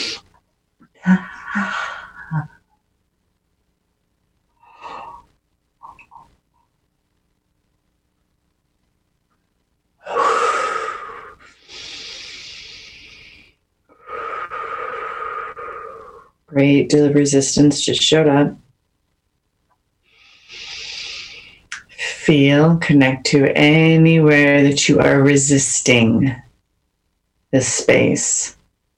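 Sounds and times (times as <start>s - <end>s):
speech: 1.0s - 2.5s, 16.6s - 18.6s, 22.3s - 26.5s, 27.5s - 28.6s
slow deep breathing into the diaphragm in a guided exercise: 10.0s - 16.4s, 20.1s - 21.7s.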